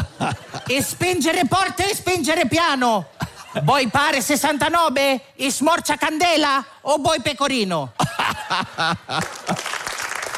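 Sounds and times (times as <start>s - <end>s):
laughter: 0.0s - 1.2s, 8.0s - 9.8s
speech: 0.2s - 9.6s
audience applause: 9.1s - 10.3s.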